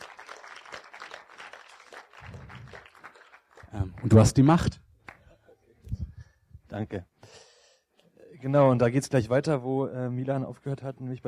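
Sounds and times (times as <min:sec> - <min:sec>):
audience applause: 0:00.0 - 0:04.6
speech: 0:03.7 - 0:04.8, 0:06.8 - 0:07.1, 0:08.4 - 0:11.2.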